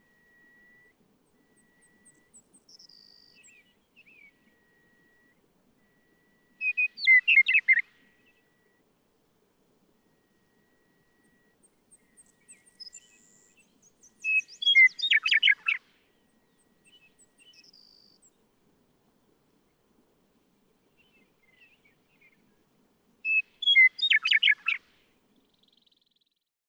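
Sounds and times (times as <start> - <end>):
Western Meadowlark: 0.0 - 19.9, 20.6 - 26.3.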